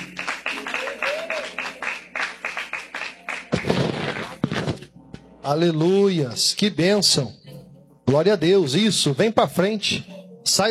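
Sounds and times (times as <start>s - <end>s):
audience clapping: 0.0s - 4.8s
speech: 5.5s - 7.4s, 8.1s - 10.6s.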